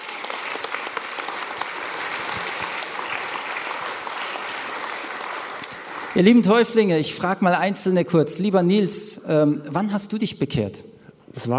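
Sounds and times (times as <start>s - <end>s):
audience applause: 0.0s - 6.9s
speech: 6.2s - 11.5s.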